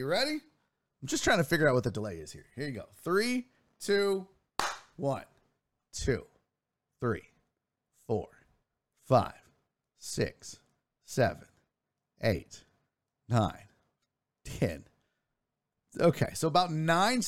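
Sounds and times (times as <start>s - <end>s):
speech: 0.0s - 4.3s, 5.0s - 5.3s, 6.0s - 6.3s, 7.0s - 7.3s, 8.1s - 8.4s, 9.1s - 9.4s, 10.0s - 11.5s, 12.2s - 12.6s, 13.3s - 13.7s, 14.5s - 14.9s, 16.0s - 17.2s
single hand clap: 4.6s - 5.0s.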